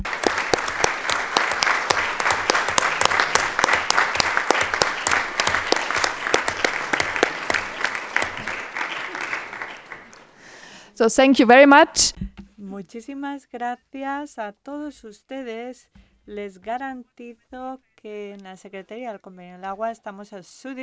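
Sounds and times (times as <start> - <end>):
audience applause: 0.0 - 10.5
speech: 11.0 - 12.2, 12.8 - 20.8.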